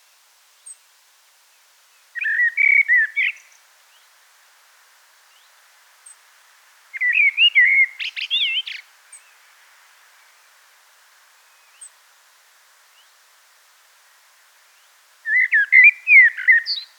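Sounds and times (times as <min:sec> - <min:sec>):
common blackbird singing: 0:02.2 - 0:03.5, 0:07.0 - 0:08.8, 0:15.3 - 0:16.9.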